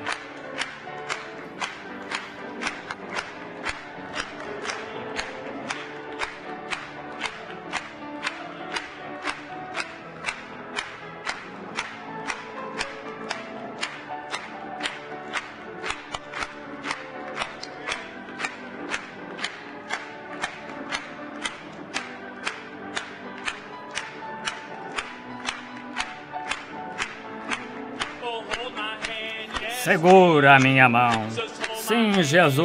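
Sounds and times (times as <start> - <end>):
audience clapping hands: 0.0 - 32.6
speech: 29.9 - 32.6.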